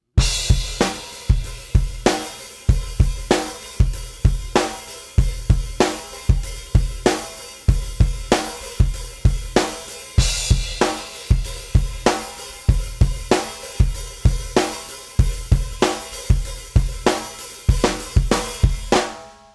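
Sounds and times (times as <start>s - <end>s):
drum: 0.2s - 19.5s.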